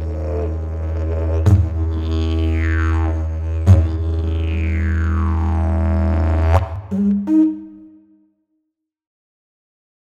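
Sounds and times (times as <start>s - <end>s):
didgeridoo: 0.0s - 8.1s.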